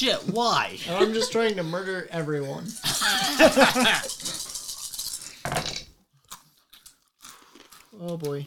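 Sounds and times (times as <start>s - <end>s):
speech: 0.0s - 4.4s, 8.0s - 8.4s
laughter: 0.5s - 2.0s, 2.7s - 4.5s
dice rolling: 4.0s - 5.8s.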